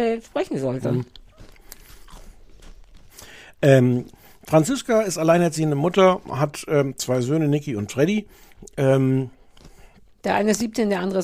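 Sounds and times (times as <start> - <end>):
speech: 0.0 - 1.2, 3.6 - 9.4, 10.2 - 11.2
chewing: 0.2 - 4.6, 8.3 - 10.2
person crunching a biscuit: 0.8 - 4.6, 8.3 - 10.2.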